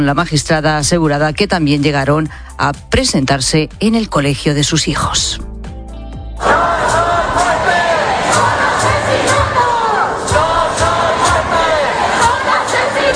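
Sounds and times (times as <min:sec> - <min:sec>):
speech: 0:00.0 - 0:05.5, 0:06.4 - 0:06.9
protesters chanting in a square: 0:06.4 - 0:13.1.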